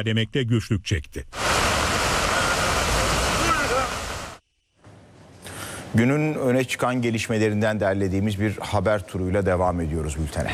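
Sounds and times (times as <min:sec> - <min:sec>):
speech: 0:00.0 - 0:01.5, 0:06.0 - 0:10.5
floodwater rushing through streets in Adana after heavy rain: 0:01.4 - 0:04.4.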